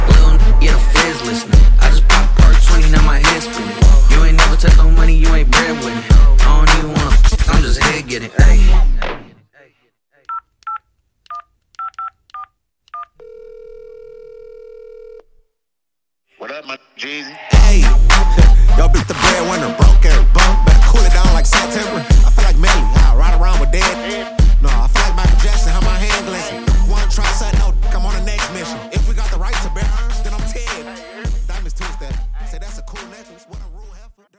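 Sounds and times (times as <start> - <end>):
mixshow drum loop: 0.0 - 9.0, 17.6 - 34.0.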